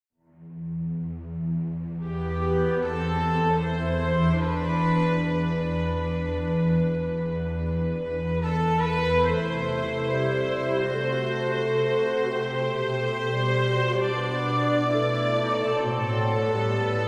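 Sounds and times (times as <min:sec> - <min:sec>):
classical music: 0:01.3 - 0:17.0.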